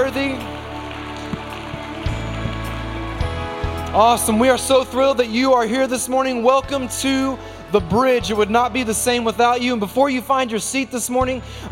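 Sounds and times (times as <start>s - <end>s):
audience applauding: 0.0s - 4.6s
speech: 0.1s - 0.7s, 3.9s - 11.7s.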